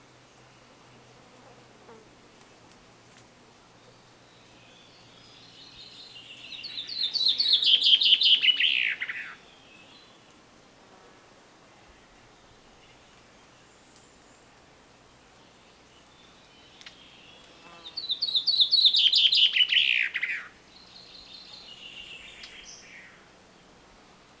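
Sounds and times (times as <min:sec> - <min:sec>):
common chaffinch Fringilla coelebs singing: 0:04.1 - 0:10.2, 0:15.5 - 0:23.2.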